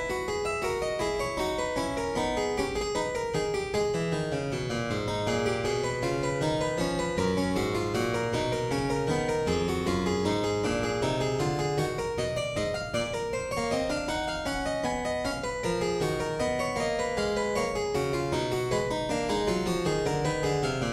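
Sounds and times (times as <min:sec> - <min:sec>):
harpsichord prelude: 0:00.0 - 0:20.9.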